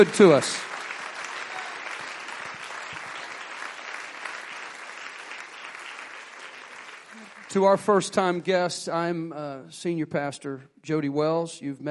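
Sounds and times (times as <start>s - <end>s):
speech: 0.0s - 0.7s, 7.5s - 11.8s
audience applause: 0.0s - 8.4s.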